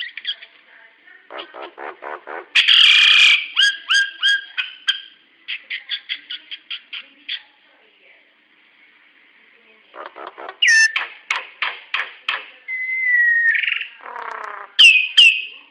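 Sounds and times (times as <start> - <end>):
hill myna vocalizations: 1.2 - 7.6, 9.9 - 11.2, 12.7 - 15.6.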